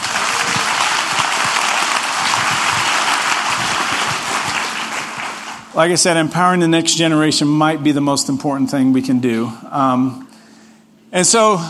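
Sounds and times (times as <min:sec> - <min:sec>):
audience applause: 0:00.0 - 0:05.7
speech: 0:05.8 - 0:10.3, 0:11.1 - 0:11.6.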